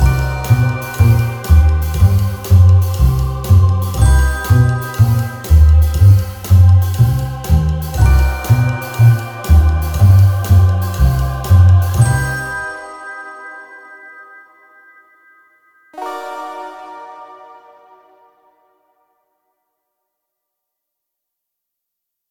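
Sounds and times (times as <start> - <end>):
funny playful mysterious cartoon music: 0.0 - 13.8, 16.0 - 18.9.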